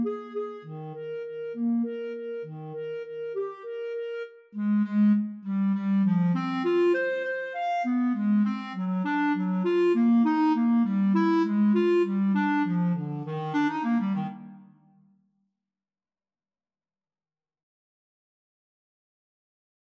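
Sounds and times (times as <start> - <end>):
flute and clarinet waltz duet: 0.0 - 14.7.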